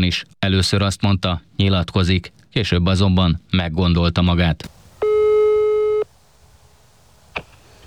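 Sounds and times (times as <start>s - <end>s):
speech: 0.0s - 4.8s
phone line pickup click: 5.0s - 6.1s
telephone ringing tone on a call: 5.0s - 6.1s.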